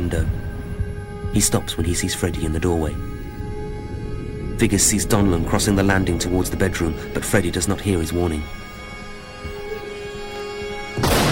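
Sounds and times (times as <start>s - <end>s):
low steady hum: 0.0s - 11.0s
speech: 0.1s - 0.5s, 1.3s - 3.1s, 4.6s - 8.6s
gunshot in a radio drama: 11.0s - 11.3s.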